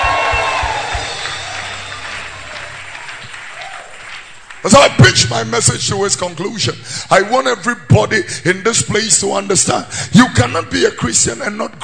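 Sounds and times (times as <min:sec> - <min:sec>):
crowd shouting praise: 0:00.0 - 0:04.9
audience clapping: 0:00.0 - 0:05.6
speech: 0:04.6 - 0:11.8.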